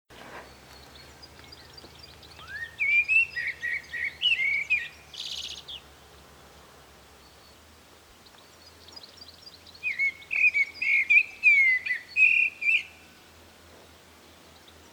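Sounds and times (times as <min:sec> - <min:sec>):
common blackbird song: 0:02.4 - 0:05.6, 0:09.8 - 0:12.9.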